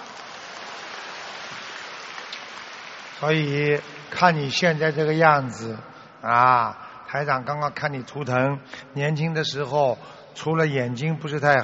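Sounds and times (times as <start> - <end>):
applause: 0.0 - 5.6
speech: 3.2 - 11.6.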